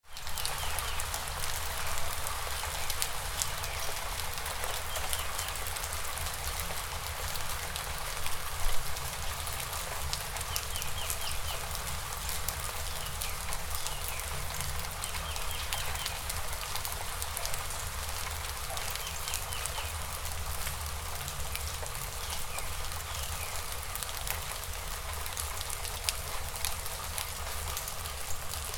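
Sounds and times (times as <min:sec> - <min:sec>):
gentle rain: 0:00.0 - 0:28.7.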